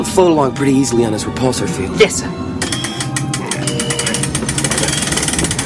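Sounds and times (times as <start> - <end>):
speech: 0.1 - 2.5
heavy door being raised manually: 2.6 - 5.6.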